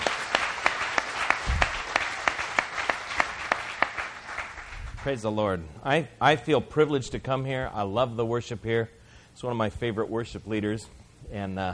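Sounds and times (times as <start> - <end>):
audience applause welcoming a speaker at a worship gathering: 0.0 - 5.0
speech: 5.0 - 11.7.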